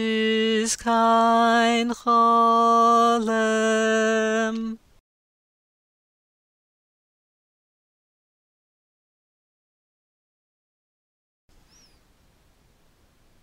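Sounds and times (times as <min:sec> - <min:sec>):
tenor singing drill: 0:00.0 - 0:04.9.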